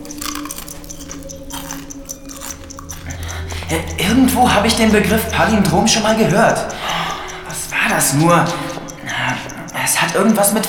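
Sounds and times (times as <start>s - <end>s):
low steady hum: 0.0s - 9.9s
chewing a mouthful of cornflakes: 0.0s - 10.6s
speech: 3.7s - 6.7s, 7.9s - 8.6s, 10.1s - 10.6s.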